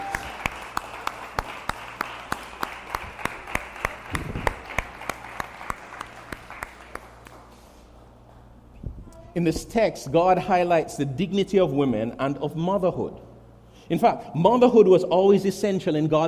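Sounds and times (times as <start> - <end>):
crowd applause: 0.0 - 7.7
speech: 9.4 - 13.3, 13.9 - 16.2.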